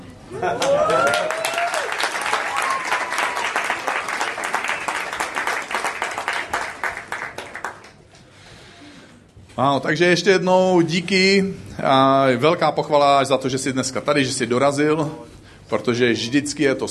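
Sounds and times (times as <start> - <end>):
speech: 0.4 - 1.1, 9.6 - 16.8
audience applauding the band: 0.4 - 8.0
whistle-like cheer: 0.7 - 3.9.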